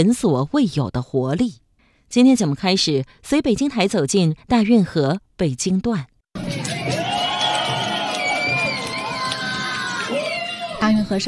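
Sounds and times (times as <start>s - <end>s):
speech: 0.0s - 6.6s, 10.8s - 11.2s
crowd cheering at dragon boat race: 6.4s - 11.2s.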